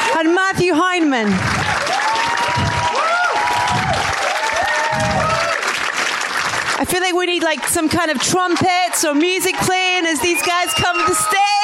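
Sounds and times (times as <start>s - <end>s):
audience applause welcoming a film's discussion panel: 0.0s - 11.6s
speech: 0.2s - 1.6s, 6.8s - 11.6s
gliding whoops and cheers: 1.6s - 5.7s, 9.3s - 11.6s.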